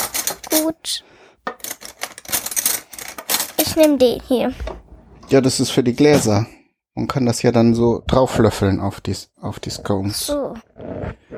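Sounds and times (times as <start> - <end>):
cutlery being taken out of drawer: 0.0 - 0.7, 1.5 - 4.0
speech: 0.6 - 1.1, 3.6 - 4.7, 5.3 - 11.2.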